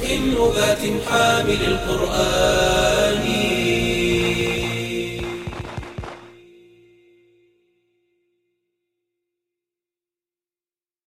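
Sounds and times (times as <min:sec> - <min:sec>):
Arabic nasheed singing: 0:00.0 - 0:06.8.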